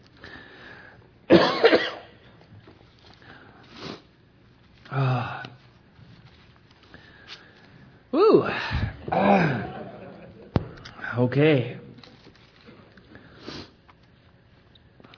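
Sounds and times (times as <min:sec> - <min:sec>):
person coughing after something went down the wrong pipe: 0:01.3 - 0:02.2, 0:08.8 - 0:10.0
throat clearing: 0:08.8 - 0:09.9
laughter: 0:09.0 - 0:10.8
speech: 0:11.2 - 0:11.8.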